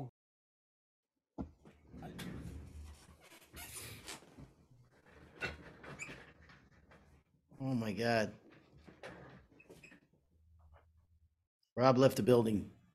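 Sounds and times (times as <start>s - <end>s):
chair from the Harvard Library squeaking and creaking: 1.8s - 7.2s, 8.4s - 10.9s
speech: 7.6s - 8.4s, 11.8s - 12.8s.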